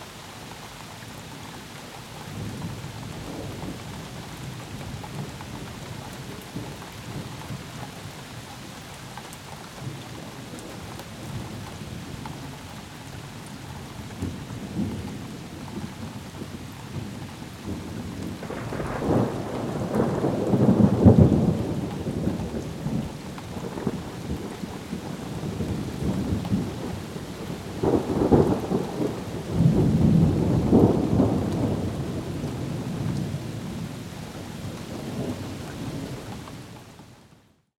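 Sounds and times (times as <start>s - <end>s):
rain: 0.0s - 37.7s
thunder: 14.2s - 33.9s.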